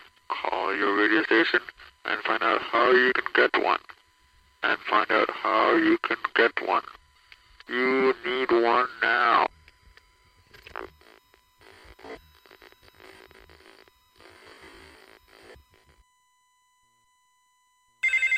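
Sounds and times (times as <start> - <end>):
speech: 0.7 - 3.9, 4.6 - 7.0, 7.7 - 9.5
crackly bursts of noise: 10.4 - 16.0
telephone ringing: 18.0 - 18.3.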